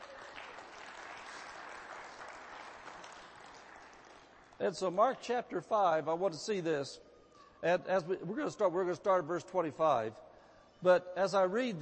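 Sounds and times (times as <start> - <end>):
audience clapping loudly: 0.0 - 4.7
speech: 4.6 - 11.7.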